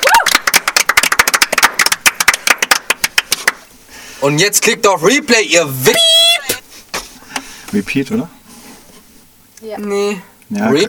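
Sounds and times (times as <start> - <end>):
applause: 0.0 - 3.6
speech: 4.2 - 6.4, 7.7 - 8.4, 9.6 - 10.8.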